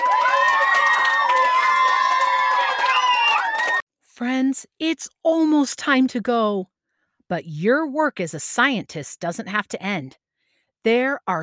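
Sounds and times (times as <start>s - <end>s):
applause: 0.0s - 3.8s
speech: 4.6s - 6.7s, 7.3s - 10.2s, 10.8s - 11.4s.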